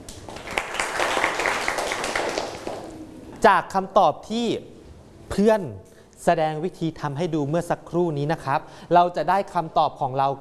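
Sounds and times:
class applauding a student: 0.0s - 3.0s
speech: 3.4s - 4.7s, 5.3s - 10.4s.

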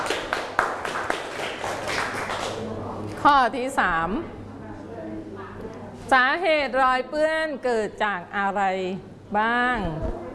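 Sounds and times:
classroom clapping for a group: 0.0s - 2.6s
speech: 3.2s - 4.4s, 6.1s - 10.2s.

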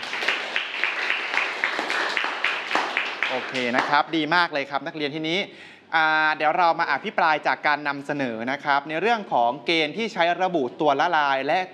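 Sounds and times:
students clapping: 0.0s - 4.1s
speech: 3.3s - 11.7s.

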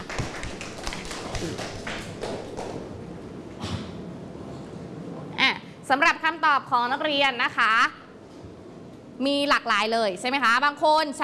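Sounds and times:
classroom students clapping for a group: 0.0s - 3.1s
speech: 5.9s - 8.0s, 9.2s - 11.2s.

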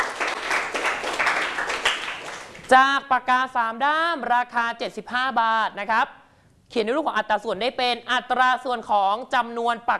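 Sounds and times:
students in a classroom clapping for a classmate: 0.0s - 2.7s
speech: 2.7s - 9.9s.

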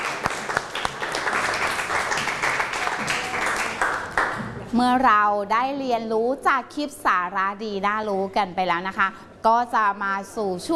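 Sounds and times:
audience applause: 0.0s - 4.5s
speech: 4.7s - 10.7s.

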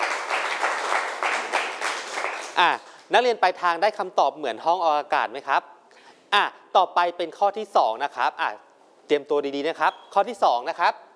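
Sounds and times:
classroom applause: 0.0s - 2.7s
speech: 2.6s - 5.7s, 6.3s - 11.0s.

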